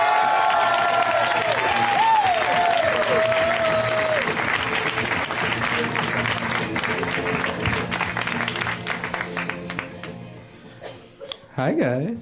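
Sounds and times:
audience applause for a comedian at a stand-up comedy show: 0.0 - 10.2.

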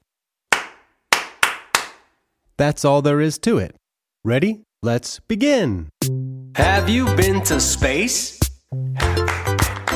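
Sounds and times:
hands clapping a rhythm: 0.5 - 2.1, 7.0 - 9.9
speech: 2.6 - 9.2.

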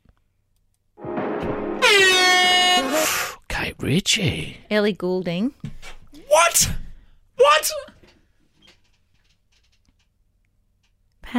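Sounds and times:
quiz buzzer horn sound effect: 1.0 - 3.3
speech: 3.8 - 6.8, 7.5 - 8.0.

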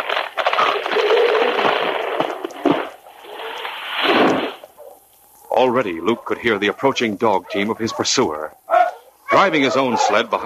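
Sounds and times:
log bridge crashing into ravine: 0.0 - 3.0
speech: 5.6 - 8.6, 9.3 - 10.4.

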